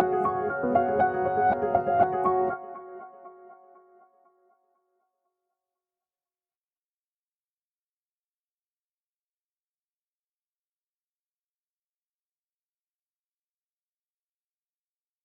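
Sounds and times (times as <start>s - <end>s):
background music: 0.0s - 4.2s.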